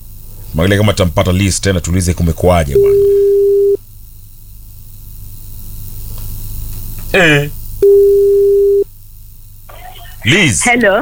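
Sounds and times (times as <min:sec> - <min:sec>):
telephone line hum and hiss: 0:00.0 - 0:11.0
speech: 0:00.5 - 0:03.2, 0:07.1 - 0:08.3, 0:10.2 - 0:11.0
telephone busy tone after a dropped call: 0:02.8 - 0:03.8, 0:07.8 - 0:08.9.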